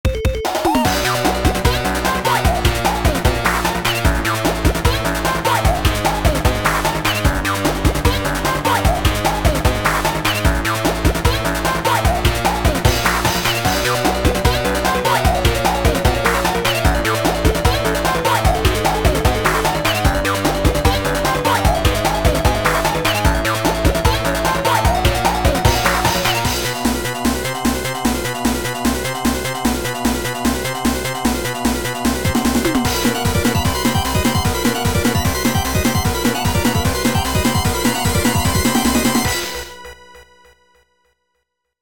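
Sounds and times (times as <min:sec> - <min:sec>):
instrumental music: 0:00.0 - 0:40.1.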